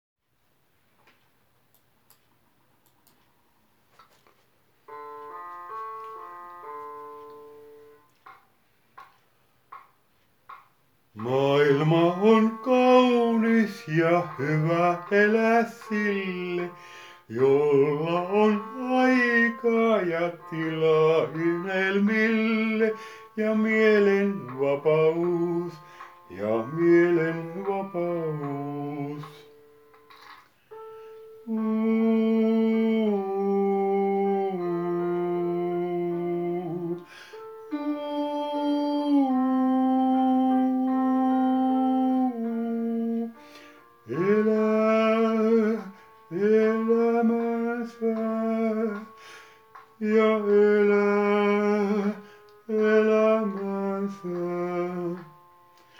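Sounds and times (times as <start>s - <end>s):
tenor singing: 11.2s - 29.8s, 31.4s - 55.9s.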